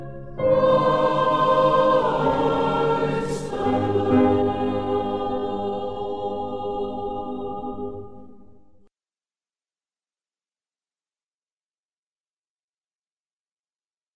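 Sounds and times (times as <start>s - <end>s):
Christmas choir singing: 0.0s - 8.9s.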